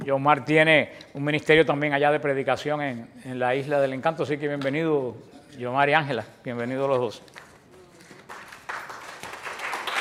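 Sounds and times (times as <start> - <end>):
speech: 0.1 - 7.4
church congregation applauding visiting guests: 7.4 - 9.9.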